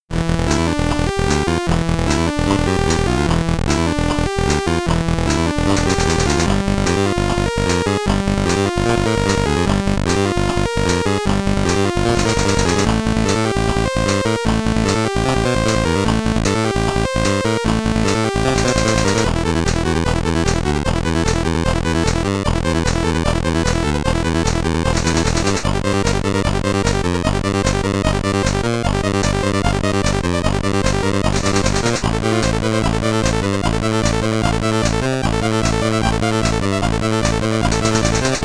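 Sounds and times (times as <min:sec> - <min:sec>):
Commodore 64 SID title screen music: 0:00.1 - 0:38.4.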